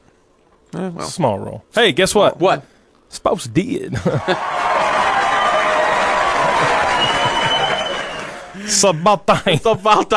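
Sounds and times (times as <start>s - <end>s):
speech: 0.8s - 4.6s, 8.6s - 10.1s
laughter: 3.9s - 10.1s
group of people clapping: 4.1s - 8.7s.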